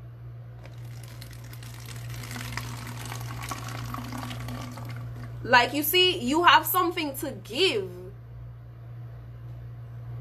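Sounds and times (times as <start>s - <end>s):
constant low electrical hum: 0.0s - 10.2s
water pouring into a bottle: 0.6s - 5.4s
speech: 5.4s - 8.0s.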